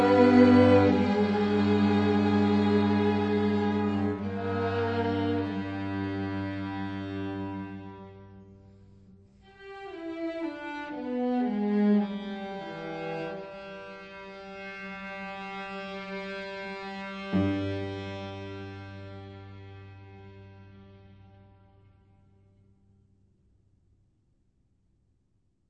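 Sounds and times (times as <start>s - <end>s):
string quartet playing: 0.0s - 8.5s, 9.6s - 21.1s.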